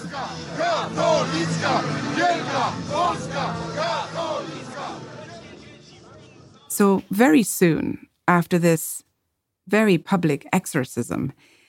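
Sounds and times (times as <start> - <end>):
large threatening crowd chanting in unison: 0.0 - 6.7
speech: 6.8 - 9.0, 9.7 - 11.6.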